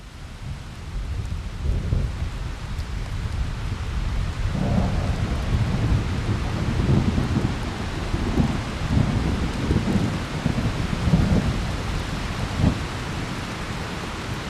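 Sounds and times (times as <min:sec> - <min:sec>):
steady rain: 0:00.0 - 0:14.4
deep rolling thunder: 0:03.5 - 0:13.5.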